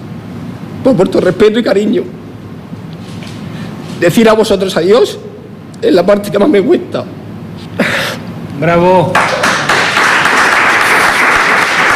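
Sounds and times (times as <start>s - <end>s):
speech: 0.8s - 2.2s, 4.0s - 7.9s, 8.6s - 9.4s
audience applause in a hall: 9.1s - 11.9s.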